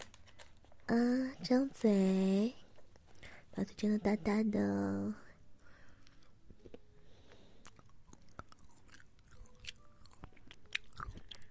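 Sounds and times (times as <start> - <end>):
speech: 0.9 - 2.6, 3.6 - 5.2
chewing and biting food: 6.0 - 11.4.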